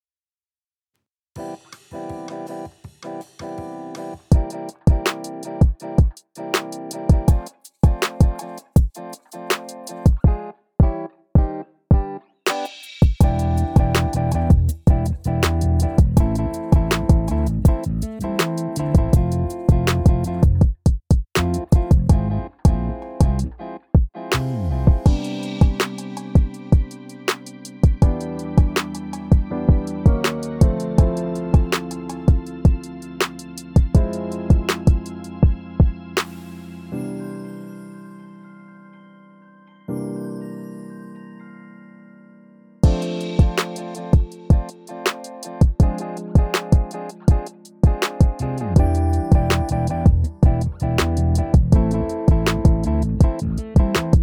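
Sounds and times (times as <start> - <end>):
instrumental music: 1.4 - 54.2.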